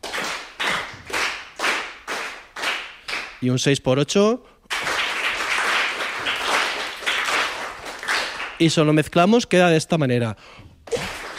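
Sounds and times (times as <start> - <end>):
rhythmic hand clapping in three-four time: 0.0 - 3.4, 4.7 - 8.8, 10.9 - 11.3
speech: 3.4 - 4.6, 8.6 - 10.7.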